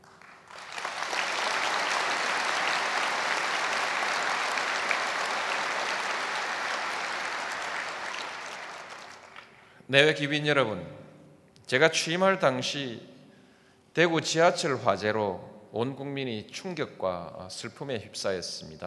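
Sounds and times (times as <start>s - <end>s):
audience applause: 0.0s - 9.6s
speech: 9.9s - 11.0s, 11.7s - 13.1s, 14.0s - 18.8s.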